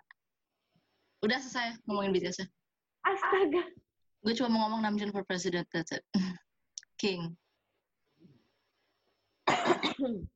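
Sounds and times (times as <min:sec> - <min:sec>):
speech: 0:01.2 - 0:06.4, 0:07.0 - 0:07.4, 0:09.8 - 0:10.3
person coughing: 0:09.5 - 0:10.3.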